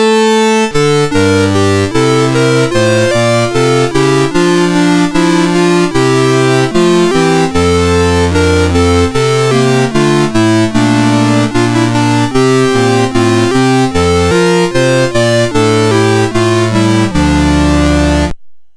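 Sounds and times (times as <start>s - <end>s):
chiptune Christmas carol on a MOS6581 sound chip: 0.0s - 18.4s.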